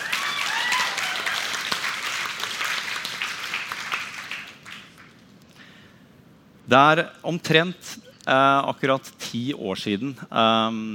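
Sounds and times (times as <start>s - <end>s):
audience applause: 0.0s - 5.1s
speech: 6.7s - 10.9s.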